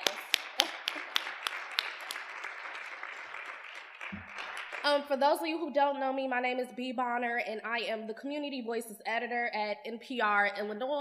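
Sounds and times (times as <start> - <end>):
audience applause: 0.0 - 5.1
speech: 4.8 - 11.0.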